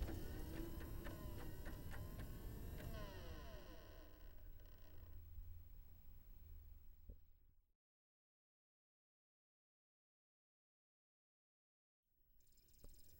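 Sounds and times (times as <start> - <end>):
noise: 0.0 - 7.5.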